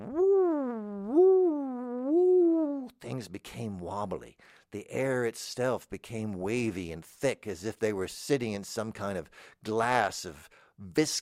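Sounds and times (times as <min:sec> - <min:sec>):
voice mimicking time machine whirring: 0:00.0 - 0:02.9
speech: 0:03.2 - 0:11.1.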